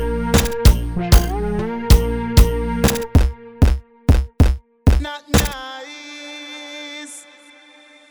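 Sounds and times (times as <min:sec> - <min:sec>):
old school dancehall music: 0:00.0 - 0:05.6.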